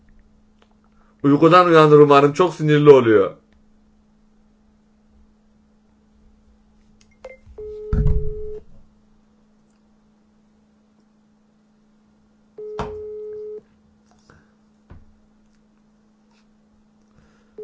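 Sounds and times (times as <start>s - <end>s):
speech: 1.2s - 3.4s
ringback tone of a telephone call being placed: 7.3s - 8.6s, 12.6s - 13.6s
bumps and low rustles: 7.5s - 8.9s.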